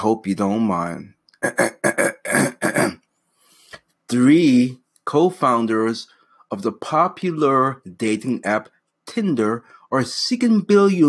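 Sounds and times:
speech: 0.0s - 2.1s, 4.1s - 11.0s
throat clearing: 1.4s - 3.0s.

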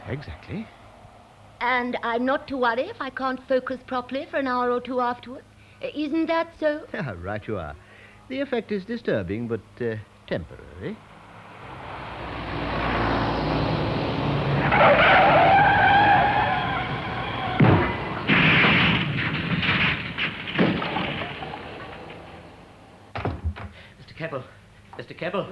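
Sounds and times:
speech: 0.1s - 0.8s, 1.6s - 11.1s, 14.7s - 15.1s, 25.2s - 25.4s
car skidding: 11.0s - 23.1s.

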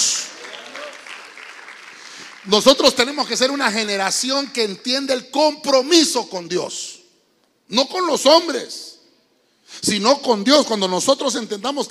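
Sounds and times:
audience clapping: 0.0s - 4.3s
speech: 2.4s - 6.9s, 7.7s - 8.8s, 9.8s - 11.8s.

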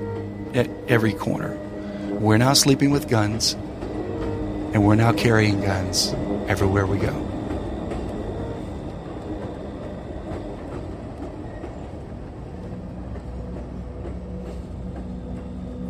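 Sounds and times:
thin squealing hum: 0.0s - 11.9s
freight train rolling on tracks: 0.0s - 15.8s
speech: 0.5s - 3.7s, 4.7s - 7.3s.

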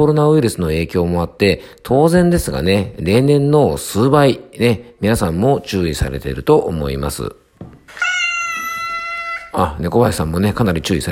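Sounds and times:
speech: 0.0s - 7.4s, 9.5s - 11.1s
cat meowing: 7.9s - 9.8s.

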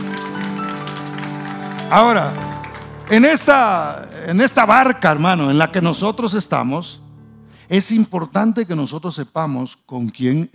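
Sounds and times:
audience applause: 0.0s - 4.2s
speech: 1.9s - 2.5s, 3.1s - 7.0s, 7.7s - 10.5s.

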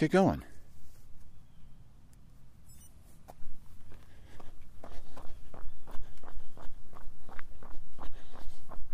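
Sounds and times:
running footsteps on a slow shakeout run from a hilltop: 3.2s - 8.9s.

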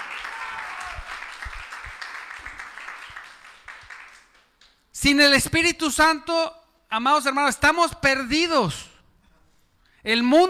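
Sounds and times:
church congregation applauding during a sermon: 0.0s - 4.8s
speech: 5.0s - 8.9s, 10.0s - 10.4s.

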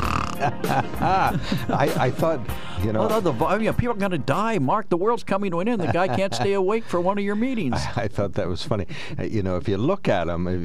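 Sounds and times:
voice imitating snoring: 0.0s - 0.6s
laughter: 0.3s - 3.4s, 5.6s - 8.8s
speech: 0.4s - 10.6s.

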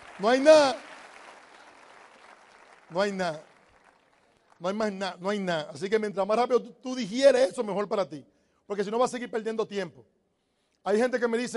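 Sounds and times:
audience applause: 0.0s - 4.7s
speech: 0.2s - 0.9s, 2.9s - 3.5s, 4.6s - 10.2s, 10.8s - 11.5s.

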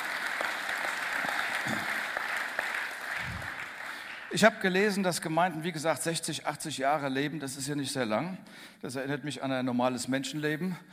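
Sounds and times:
audience applause: 0.0s - 4.4s
speech: 4.3s - 10.9s.

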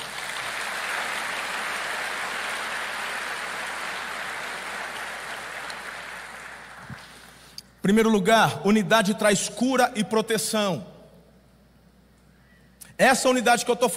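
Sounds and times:
audience applause: 0.0s - 7.0s
speech: 7.8s - 10.9s, 13.0s - 13.9s.

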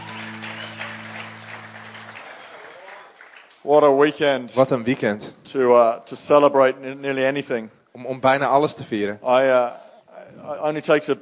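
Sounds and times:
applause for the band: 0.0s - 3.7s
speech: 3.6s - 9.8s, 10.4s - 11.2s.

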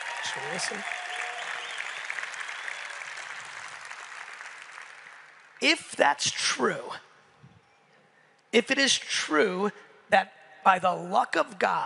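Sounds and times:
audience clapping: 0.0s - 5.7s
speech: 0.3s - 1.0s, 5.6s - 7.1s, 8.5s - 11.8s.

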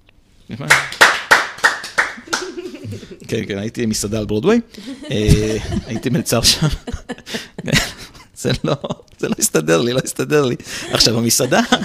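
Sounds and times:
speech: 0.5s - 1.0s, 2.9s - 11.8s
hand clapping: 0.7s - 2.8s
laughter: 2.2s - 3.4s, 4.8s - 11.8s.

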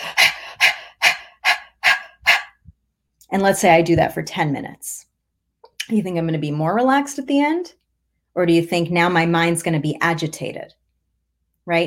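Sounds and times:
person breathing rapidly and tensely: 0.0s - 2.6s
speech: 3.3s - 5.1s, 5.9s - 7.8s, 8.4s - 10.8s.

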